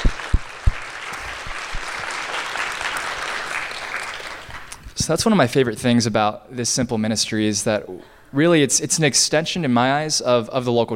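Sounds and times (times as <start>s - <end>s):
audience applause: 0.0s - 4.7s
speech: 5.0s - 10.9s.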